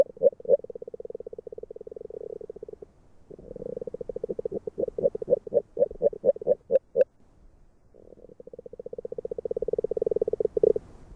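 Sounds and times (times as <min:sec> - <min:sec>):
agile frog Rana dalmatina low hollow knocking notes: 0:00.0 - 0:02.8, 0:03.5 - 0:07.1, 0:08.4 - 0:10.8.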